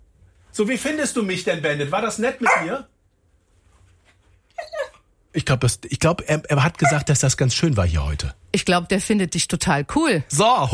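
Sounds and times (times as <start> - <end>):
speech: 0.6 - 2.9, 5.4 - 10.7
dog whimpering: 4.5 - 5.1, 6.8 - 7.1.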